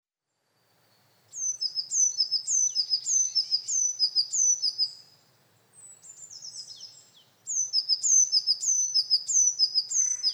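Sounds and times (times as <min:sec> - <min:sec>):
Eurasian blue tit calls: 0:01.3 - 0:05.0, 0:05.8 - 0:10.3.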